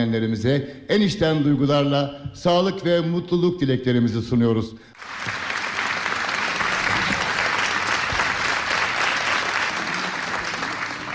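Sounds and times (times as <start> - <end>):
speech: 0.0 - 5.4
audience applause for a choir and its conductor at a Turkish folk song concert: 5.0 - 11.1.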